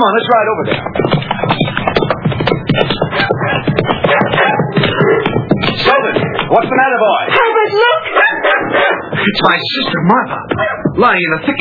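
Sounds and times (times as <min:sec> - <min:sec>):
speech: 0:00.0 - 0:01.6, 0:06.5 - 0:08.2, 0:09.2 - 0:11.5
dog barking and yelping: 0:03.0 - 0:06.2, 0:07.3 - 0:09.3, 0:10.5 - 0:10.9.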